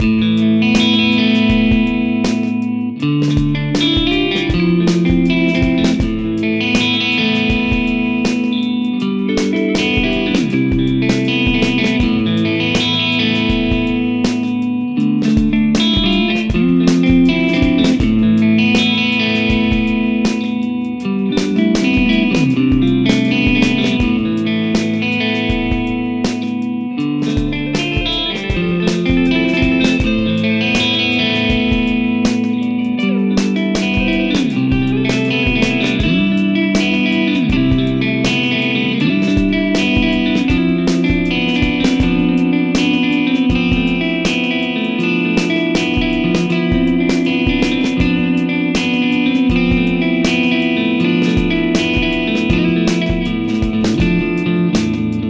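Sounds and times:
Fender American Original 60 Jazzmaster electric guitar on both pickups: 0.0s - 55.2s.

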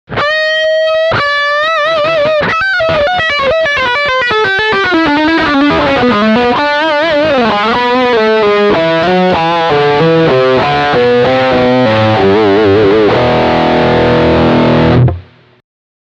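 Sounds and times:
electric guitar lead on rear humbucker: 0.1s - 15.6s.

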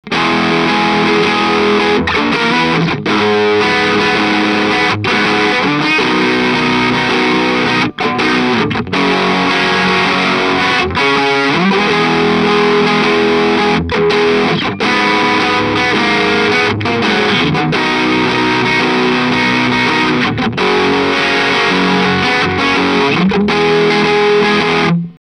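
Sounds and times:
guitar through Boss DS-1 distortion at maximum: 0.0s - 25.2s.

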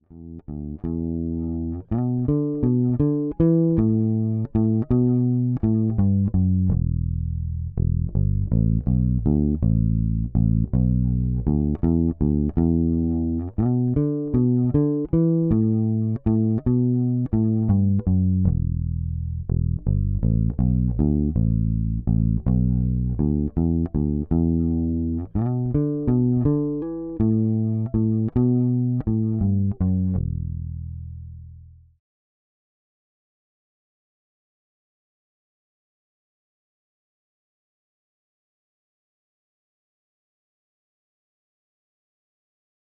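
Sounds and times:
Fender Precision Bass through Radial J48: 0.0s - 32.0s.

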